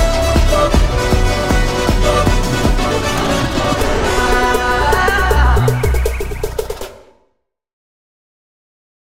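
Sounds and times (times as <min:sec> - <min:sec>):
background music extended mix: 0:00.0 - 0:07.2.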